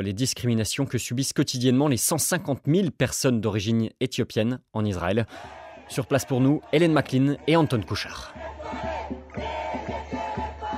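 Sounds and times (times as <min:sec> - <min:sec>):
speech: 0:00.0 - 0:09.5
protest crowd chanting: 0:05.3 - 0:10.7.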